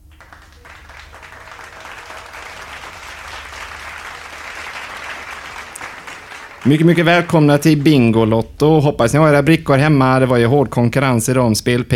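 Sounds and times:
studio audience applause at a bingo lottery game show: 0.0 - 8.4
speech: 6.6 - 11.9.

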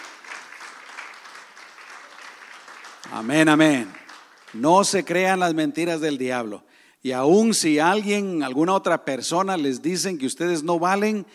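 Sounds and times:
audience applause: 0.0 - 5.0
speech: 3.0 - 11.3.

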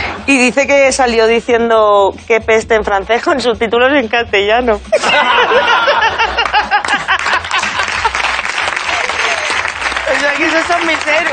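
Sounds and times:
speech: 0.3 - 6.3, 10.4 - 11.3
laughter: 4.9 - 9.8
audience applause: 6.4 - 11.3.

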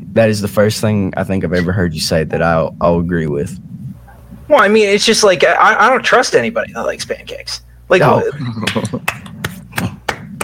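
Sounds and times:
speech: 0.2 - 3.7, 4.5 - 9.2
hand clapping: 8.6 - 10.4.

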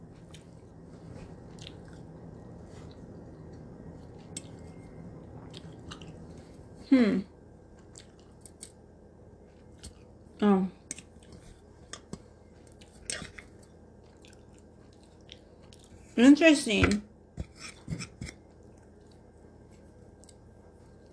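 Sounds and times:
chewing brownies: 1.3 - 6.5, 7.8 - 8.8, 9.5 - 10.1, 10.8 - 16.1, 17.7 - 21.1
speech: 6.9 - 7.3, 16.3 - 17.1.

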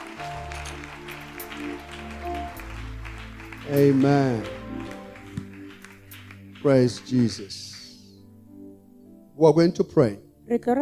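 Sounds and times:
audience clapping: 0.0 - 8.2
speech: 3.7 - 4.6, 6.6 - 7.7, 9.4 - 10.8.

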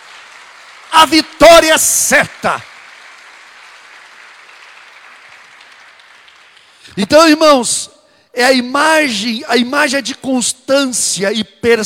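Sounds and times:
audience applauding: 0.0 - 6.9
speech: 1.0 - 2.7, 7.0 - 11.8.

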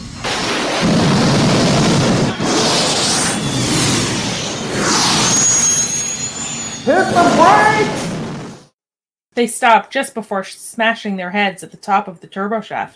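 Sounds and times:
booster rockets firing: 0.0 - 8.7
faint high whine: 1.6 - 8.6
speech: 9.4 - 12.9.

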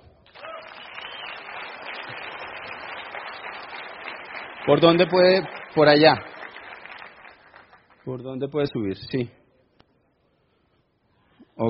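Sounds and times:
audience applause: 0.3 - 8.1
speech: 4.7 - 6.3, 8.0 - 9.4.

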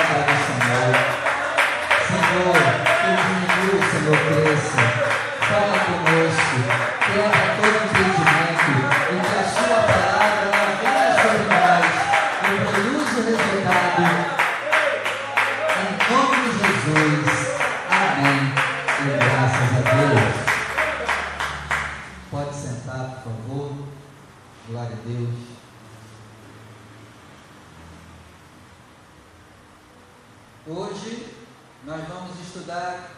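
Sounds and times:
audience applause: 0.0 - 22.1.

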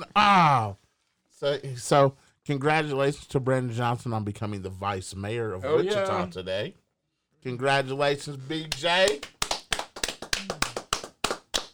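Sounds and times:
speech: 1.4 - 6.8, 7.4 - 9.4
hand claps: 8.7 - 11.7.

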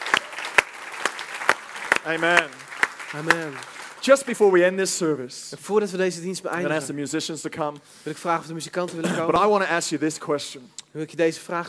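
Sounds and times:
audience applauding: 0.0 - 4.8
speech: 2.0 - 11.6.

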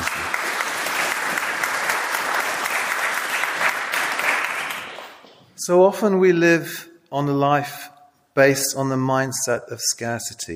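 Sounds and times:
audience clapping: 0.0 - 5.4
speech: 5.6 - 10.5.

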